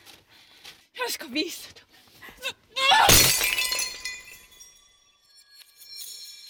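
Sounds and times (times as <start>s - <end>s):
speech: 1.1s - 1.8s
glass shards tinkling: 3.1s - 6.4s
glass vase shattering against a wall: 3.1s - 6.4s.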